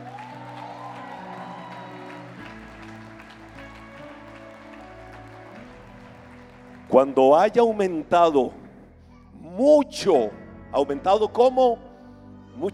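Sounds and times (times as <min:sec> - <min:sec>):
audience applauding: 0:00.0 - 0:08.6
low keyboard chords: 0:00.0 - 0:12.7
speech: 0:06.9 - 0:08.6, 0:09.6 - 0:11.8.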